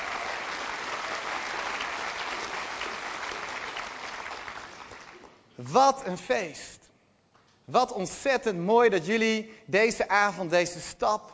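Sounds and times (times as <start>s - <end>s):
audience applause: 0.0s - 5.4s
speech: 5.7s - 6.8s, 7.7s - 11.3s.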